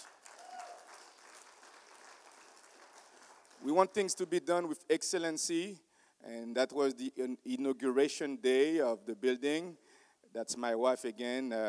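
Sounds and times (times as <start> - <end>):
crowd applause: 0.0 - 4.1
speech: 3.6 - 11.6.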